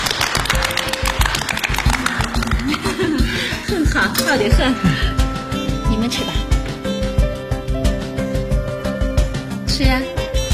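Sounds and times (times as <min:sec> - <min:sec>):
audience applause: 0:00.0 - 0:03.1
thumping regular musical beat with a sustained tone: 0:00.0 - 0:10.5
laughter: 0:01.9 - 0:05.1
speech: 0:04.3 - 0:04.9, 0:06.1 - 0:06.4.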